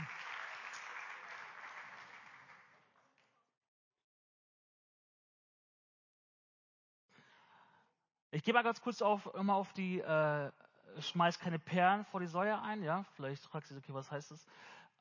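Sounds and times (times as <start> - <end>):
group applause: 0.0 - 3.3
speech: 8.3 - 14.9.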